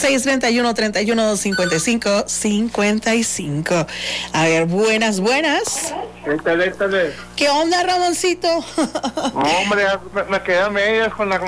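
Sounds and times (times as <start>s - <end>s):
speech: 0.0s - 11.4s
telephone ringing during a radio call-in show: 1.4s - 2.2s.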